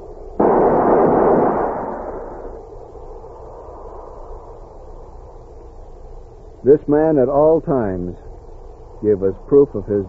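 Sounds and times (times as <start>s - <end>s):
rifle volley fired as a funeral salute: 0.4s - 2.7s
speech: 6.6s - 8.2s, 9.0s - 10.0s.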